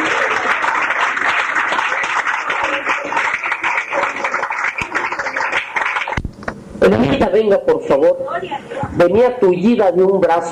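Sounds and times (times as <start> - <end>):
audience applause: 0.0 - 6.2
speech: 6.8 - 10.5.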